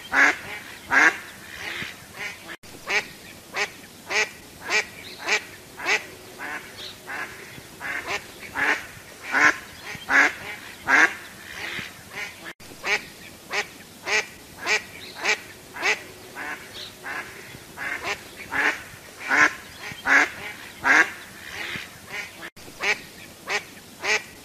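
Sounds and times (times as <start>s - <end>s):
duck quacking: 0.0s - 24.3s.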